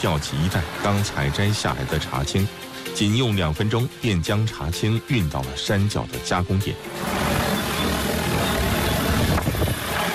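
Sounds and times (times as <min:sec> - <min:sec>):
agricultural drone rotors roaring: 0:00.0 - 0:03.6, 0:06.7 - 0:10.1
speech: 0:00.0 - 0:07.6.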